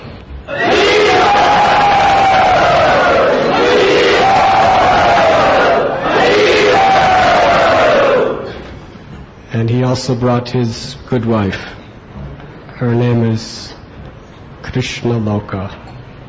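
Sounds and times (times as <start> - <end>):
speech: 0.5 - 0.7, 10.0 - 11.8, 12.8 - 13.8, 14.8 - 15.8
crowd loudly cheering to welcome a guest: 0.5 - 8.7.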